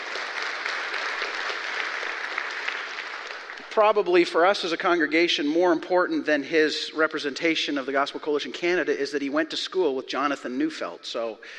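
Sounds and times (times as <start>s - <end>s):
audience applause: 0.0s - 4.3s
speech: 3.8s - 11.5s.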